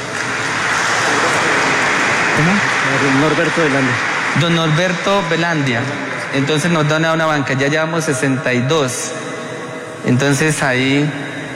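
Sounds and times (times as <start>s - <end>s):
audience applause: 0.0s - 7.8s
speech: 2.4s - 9.2s, 10.0s - 11.2s.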